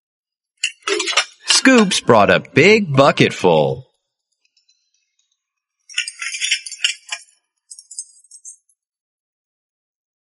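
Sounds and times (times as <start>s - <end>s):
dishes clinking in a sink: 0.6s - 2.0s, 5.9s - 8.6s
speech: 1.6s - 3.9s.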